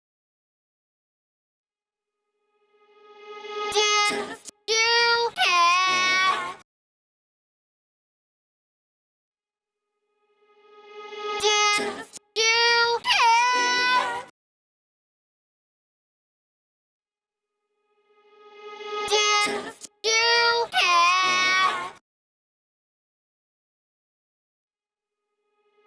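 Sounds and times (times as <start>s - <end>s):
dry a cappella singing: 3.7s - 6.6s, 11.4s - 14.3s, 19.0s - 22.0s.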